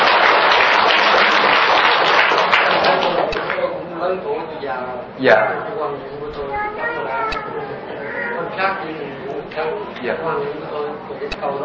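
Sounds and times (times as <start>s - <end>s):
crowd applause: 0.0s - 3.7s
speech: 4.6s - 7.9s, 8.5s - 11.6s.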